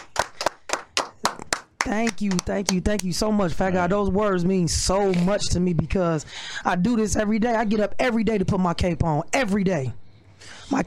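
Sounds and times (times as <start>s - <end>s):
crowd hand clapping applause: 0.0s - 3.1s
speech: 1.9s - 10.8s.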